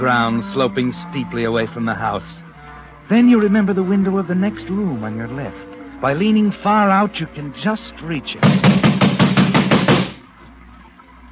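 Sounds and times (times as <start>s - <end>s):
speech: 0.0s - 2.5s, 3.1s - 8.9s
pounding on a door: 8.4s - 10.2s.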